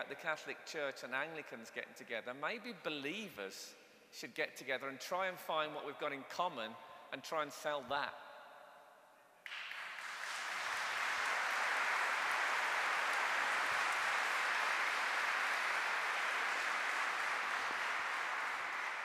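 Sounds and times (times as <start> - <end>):
speech: 0.0 - 8.2
crowd applauding: 9.4 - 19.0.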